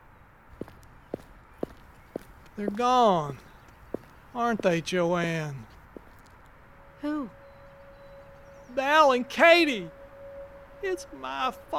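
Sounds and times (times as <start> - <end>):
footsteps of a little girl walking off, radio drama effect: 0.6 - 6.4
speech: 2.6 - 3.5, 4.4 - 5.7, 7.0 - 7.4, 8.8 - 10.0, 10.8 - 11.7.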